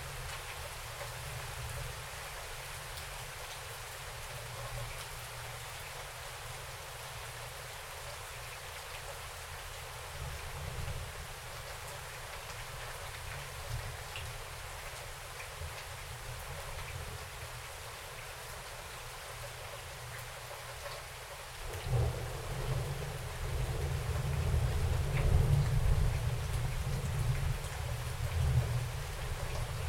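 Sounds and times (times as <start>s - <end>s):
rain outside: 0.0s - 29.8s
thunder outside: 21.7s - 27.6s.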